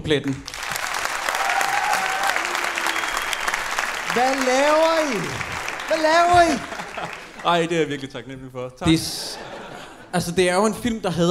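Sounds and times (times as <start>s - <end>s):
speech: 0.0s - 0.6s, 4.2s - 9.3s, 10.1s - 11.2s
audience applause: 0.3s - 8.2s
laughter: 5.6s - 8.1s, 8.9s - 10.4s.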